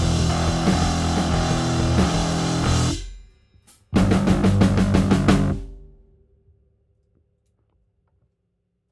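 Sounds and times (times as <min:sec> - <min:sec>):
bass: 0:00.0 - 0:03.3, 0:03.9 - 0:06.1
drums: 0:00.0 - 0:06.2.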